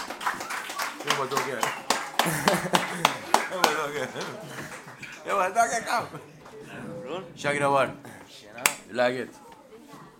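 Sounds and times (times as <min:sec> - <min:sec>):
applause: 0:00.0 - 0:05.1
speech: 0:01.1 - 0:09.4
laughter: 0:01.4 - 0:07.0.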